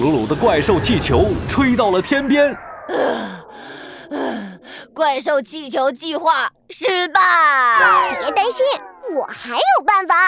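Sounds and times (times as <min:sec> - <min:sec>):
speech: 0:00.0 - 0:10.2
person yawning: 0:02.9 - 0:04.7.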